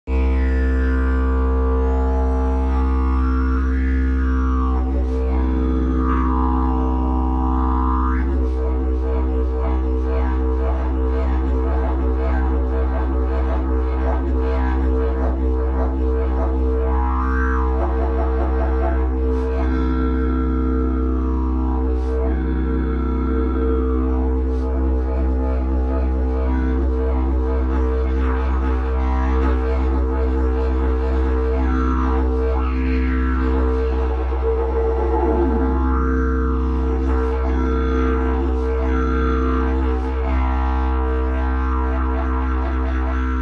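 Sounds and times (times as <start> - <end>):
didgeridoo: 0.0 - 43.4.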